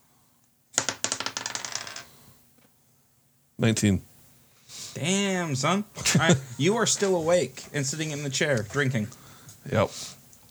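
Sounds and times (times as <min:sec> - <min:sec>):
dice rolling across a hard tabletop: 0:00.8 - 0:02.3
speech: 0:03.6 - 0:04.1, 0:04.7 - 0:10.2.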